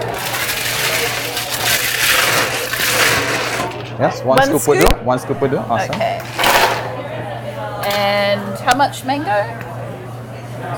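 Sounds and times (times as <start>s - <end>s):
blender crushing ice: 0.0s - 3.9s, 6.2s - 6.9s
speech: 4.0s - 6.1s, 8.0s - 9.7s.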